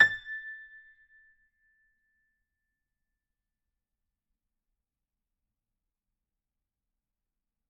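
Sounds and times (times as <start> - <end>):
Kawai grand piano sustained A5: 0.0 - 1.0.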